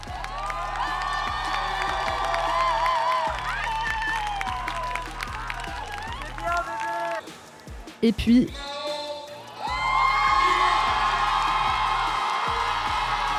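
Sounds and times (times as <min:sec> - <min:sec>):
boxing crowd cheering and shouting: 0:00.0 - 0:07.5, 0:08.5 - 0:13.3
low rhythmic thumping beat: 0:00.0 - 0:13.3
speech: 0:08.0 - 0:08.7.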